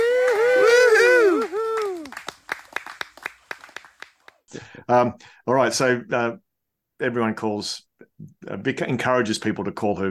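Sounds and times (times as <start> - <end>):
whooping cheers: 0.0 - 2.4
studio-audience applause sound effect: 0.0 - 4.5
speech: 4.9 - 6.4, 7.0 - 10.0.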